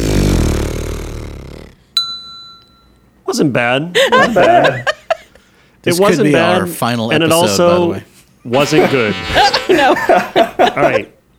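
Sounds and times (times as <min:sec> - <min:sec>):
lip buzz imitating tuba pedal tone: 0:00.0 - 0:01.9
bell ding: 0:02.0 - 0:03.1
speech: 0:03.4 - 0:04.9, 0:05.8 - 0:11.1
laughter: 0:04.0 - 0:05.4, 0:08.5 - 0:11.2.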